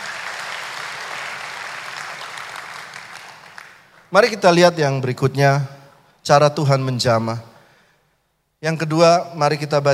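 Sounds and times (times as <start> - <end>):
audience applauding: 0.0 - 4.1
speech: 4.1 - 7.5, 8.6 - 9.9.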